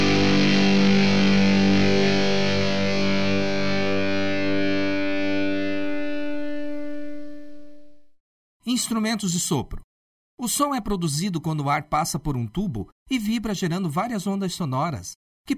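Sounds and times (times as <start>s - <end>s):
distorted electric guitar chord: 0.0s - 8.0s
speech: 8.8s - 15.5s.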